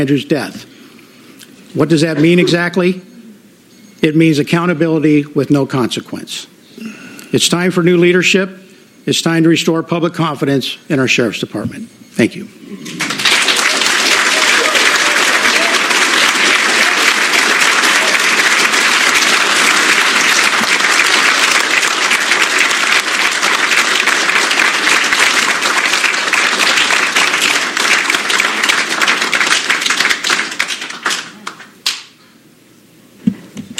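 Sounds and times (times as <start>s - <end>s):
speech: 0.0s - 0.7s, 1.7s - 3.1s, 4.0s - 13.1s
audience clapping vigorously: 12.8s - 32.2s.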